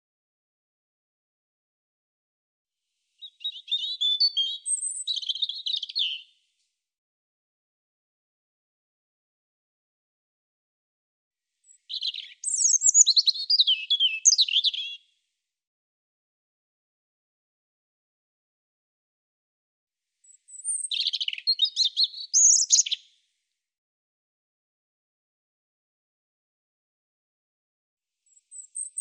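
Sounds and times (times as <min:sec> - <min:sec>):
European robin singing: 0:03.2 - 0:06.3, 0:11.6 - 0:15.0, 0:20.2 - 0:23.1, 0:28.3 - 0:29.0.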